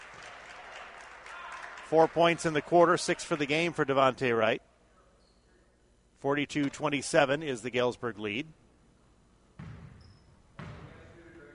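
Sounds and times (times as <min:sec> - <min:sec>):
speech: 0:01.9 - 0:04.7, 0:06.2 - 0:08.6
basketball dribbled on the court during a high school game: 0:09.5 - 0:11.5.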